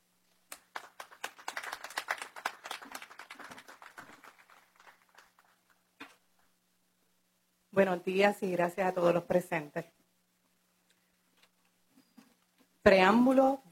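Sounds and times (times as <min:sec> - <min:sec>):
loud applause: 0:00.5 - 0:05.9
speech: 0:07.8 - 0:10.0, 0:12.9 - 0:13.7.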